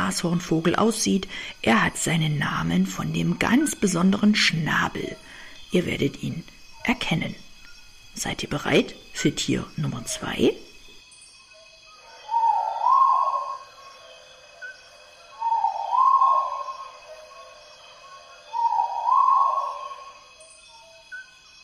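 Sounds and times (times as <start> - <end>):
speech: 0.1 - 7.4, 8.2 - 10.7
Argusfasan calling: 12.0 - 21.2.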